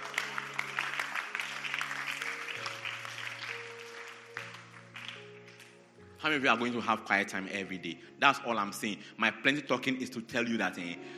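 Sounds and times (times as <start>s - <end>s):
crowd clapping: 0.0s - 5.8s
speech: 6.2s - 11.1s.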